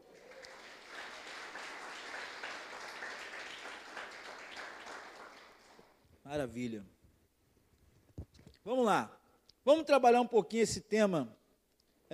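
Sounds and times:
audience applause: 0.0 - 6.0
speech: 6.3 - 7.0, 8.7 - 11.4.

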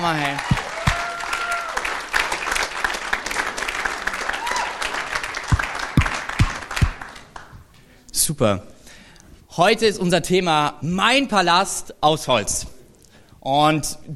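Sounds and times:
speech: 0.0 - 0.7, 8.3 - 8.7, 9.6 - 12.7, 13.4 - 14.1
audience applause for the band: 0.0 - 7.6.

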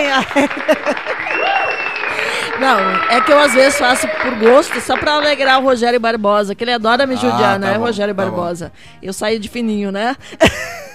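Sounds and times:
applause: 0.0 - 5.6
speech: 0.2 - 1.6, 2.6 - 10.8.

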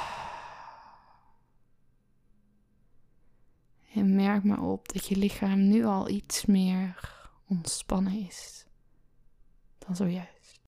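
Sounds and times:
breathy exhale through the mouth in a relaxation exercise: 0.0 - 1.4
speech: 4.0 - 8.7, 9.8 - 10.6.

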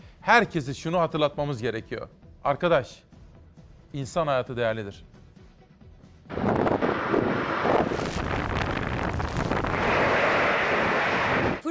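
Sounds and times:
speech: 0.2 - 3.1, 3.9 - 5.1
strong southwesterly storm wind: 6.3 - 11.6.

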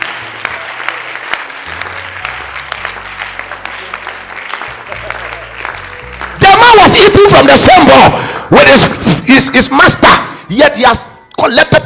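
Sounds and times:
audience clapping: 0.0 - 8.0
speech: 7.2 - 11.8.

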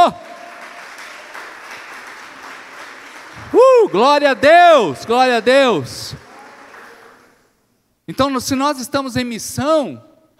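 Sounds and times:
speech: 0.0 - 0.2, 3.4 - 6.2, 8.1 - 10.1
audience applauding loudly: 0.0 - 7.4.

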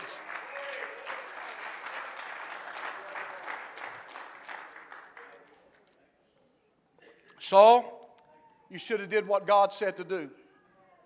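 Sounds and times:
audience clapping hands: 0.0 - 6.0
speech: 7.5 - 8.0, 8.7 - 10.4.

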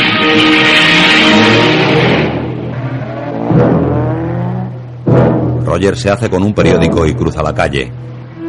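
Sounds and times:
car driving away: 0.0 - 5.7
speech: 5.8 - 8.2.

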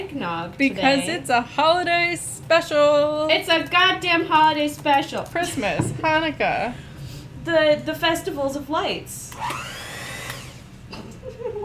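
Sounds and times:
speech: 0.1 - 9.8
electric mixer revving: 9.3 - 10.8.

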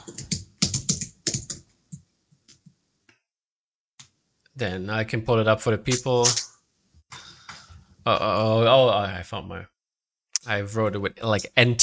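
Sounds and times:
typing on a computer keyboard: 0.0 - 2.7
speech: 4.6 - 6.5, 8.0 - 9.7, 10.4 - 11.8.

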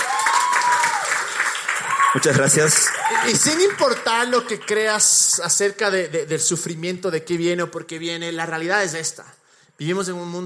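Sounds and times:
audience applause: 0.0 - 5.4
speech: 2.1 - 10.4.

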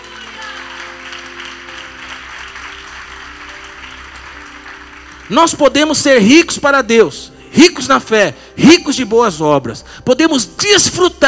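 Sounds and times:
audience applause: 0.0 - 5.3
speech: 5.3 - 11.2.

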